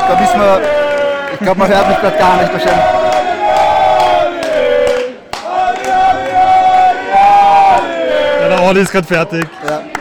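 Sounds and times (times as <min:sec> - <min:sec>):
audience applause: 0:00.0 - 0:09.9
speech: 0:00.1 - 0:03.1, 0:08.6 - 0:09.9.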